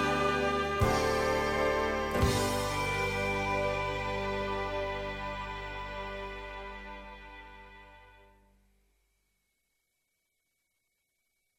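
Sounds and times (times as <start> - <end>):
trumpet: 0.0 - 8.4.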